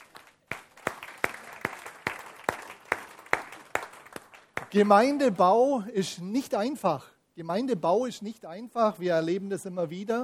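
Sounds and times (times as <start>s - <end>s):
audience applause: 0.0s - 4.9s
speech: 4.7s - 10.2s.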